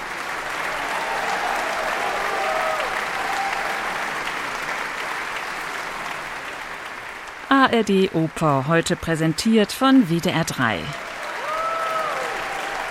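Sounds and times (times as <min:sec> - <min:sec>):
opera audience applauding after final scene in a hall: 0:00.0 - 0:07.5, 0:10.6 - 0:12.8
faint scattered voices or cheers: 0:00.4 - 0:04.3, 0:10.9 - 0:12.8
speech: 0:07.6 - 0:11.0.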